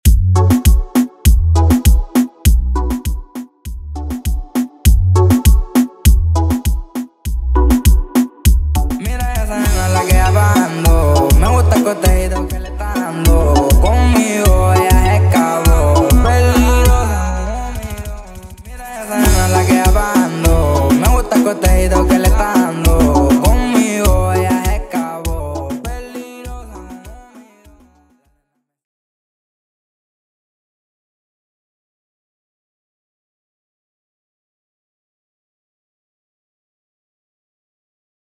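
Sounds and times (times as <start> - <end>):
intro and outro music: 0.1 - 28.0.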